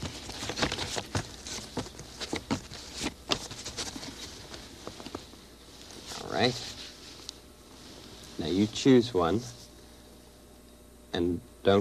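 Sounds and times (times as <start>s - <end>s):
playing cards being shuffled: 0.0s - 7.0s
speech: 6.4s - 6.7s, 8.5s - 9.6s, 11.2s - 11.7s.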